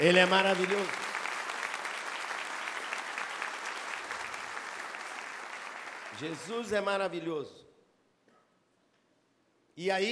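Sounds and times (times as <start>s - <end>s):
speech: 0.0s - 1.1s, 6.2s - 7.6s, 9.8s - 10.1s
audience applause: 0.0s - 6.8s.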